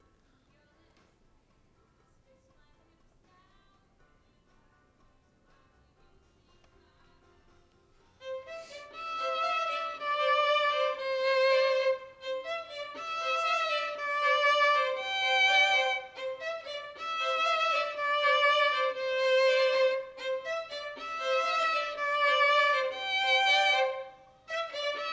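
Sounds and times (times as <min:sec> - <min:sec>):
violin: 0:08.2 - 0:25.1.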